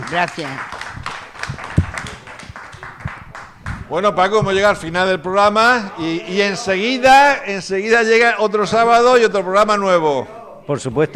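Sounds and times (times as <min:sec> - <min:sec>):
applause: 0:00.0 - 0:03.9
speech: 0:00.1 - 0:00.8, 0:03.9 - 0:11.1.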